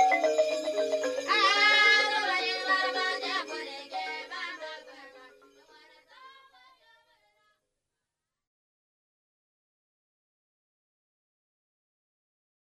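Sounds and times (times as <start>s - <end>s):
balafon: 0.0s - 5.0s.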